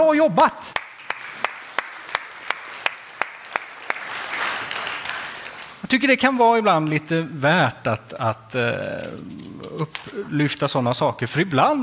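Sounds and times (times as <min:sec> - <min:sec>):
speech: 0:00.0 - 0:00.8, 0:05.9 - 0:11.8
audience applause: 0:00.8 - 0:05.8.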